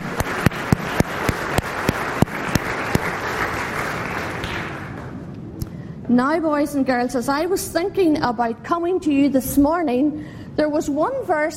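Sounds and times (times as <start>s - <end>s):
audience applause: 0.0s - 5.2s
speech: 6.1s - 11.5s.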